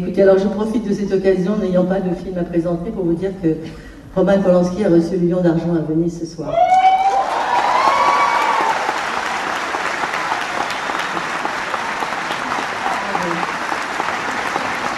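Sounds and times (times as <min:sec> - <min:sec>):
speech: 0:00.0 - 0:06.8
film festival audience applause and cheering: 0:06.6 - 0:14.9
crowd voices: 0:09.4 - 0:14.9.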